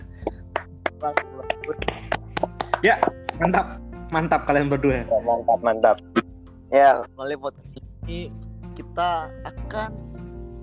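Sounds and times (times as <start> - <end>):
hand clapping: 0.2 - 3.8
speech: 1.0 - 2.1, 2.8 - 8.4, 9.0 - 10.1.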